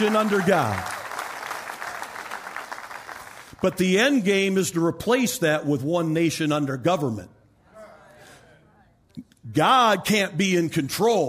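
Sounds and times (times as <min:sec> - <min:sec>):
speech: 0:00.0 - 0:00.9, 0:03.6 - 0:07.4, 0:09.5 - 0:11.2
audience hand clapping: 0:00.0 - 0:03.8.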